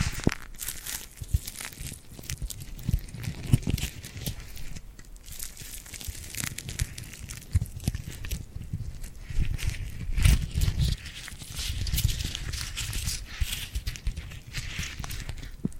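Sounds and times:
glue-coated hands rubbing and pulling apart with tacky snaps: 0:00.0 - 0:15.7.

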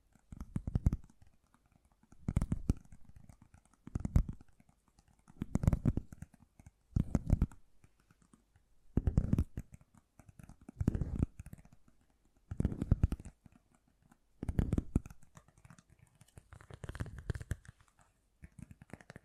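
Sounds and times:
fast gentle tapping: 0:00.2 - 0:19.2.

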